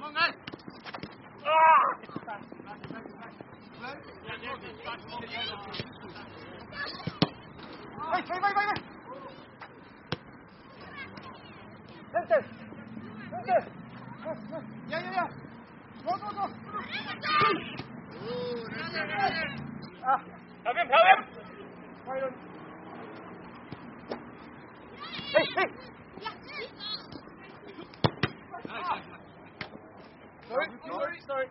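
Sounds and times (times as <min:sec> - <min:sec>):
football game in a park: 0:00.0 - 0:31.4.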